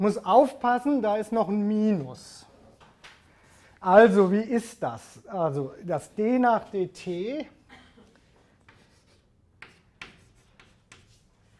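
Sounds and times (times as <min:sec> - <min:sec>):
speech: 0:00.0 - 0:02.5, 0:03.8 - 0:07.6
scratching strokes of an equation written by hand: 0:08.6 - 0:11.5.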